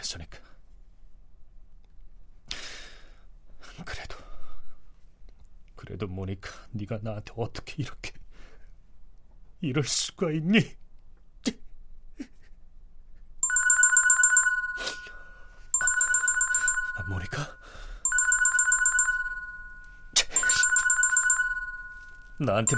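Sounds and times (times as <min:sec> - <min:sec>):
speech: 0:05.9 - 0:08.2, 0:09.6 - 0:10.8, 0:11.4 - 0:11.6, 0:22.4 - 0:22.7
phone ringing: 0:13.4 - 0:22.7.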